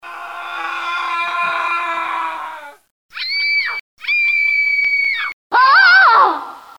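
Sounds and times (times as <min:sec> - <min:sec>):
person screaming in horror: 0:00.0 - 0:03.8, 0:05.2 - 0:06.7.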